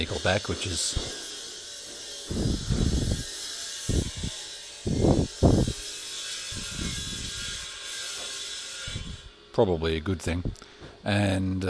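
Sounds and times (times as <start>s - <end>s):
speech: 0.0s - 1.2s, 9.6s - 11.6s
construction circular saws: 0.0s - 9.8s.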